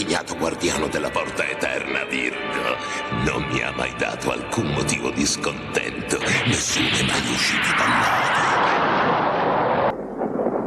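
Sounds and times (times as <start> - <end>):
speech: 0.2 - 8.8
lightning bolt strike: 6.3 - 10.6.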